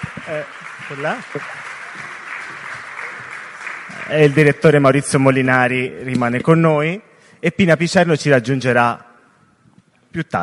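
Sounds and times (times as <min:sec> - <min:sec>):
audience applause: 0:00.0 - 0:05.5
speech: 0:00.3 - 0:01.6, 0:04.1 - 0:09.1, 0:10.1 - 0:10.4.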